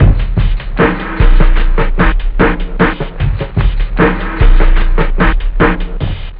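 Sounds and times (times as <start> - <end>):
house drum break: 0.0 - 6.3.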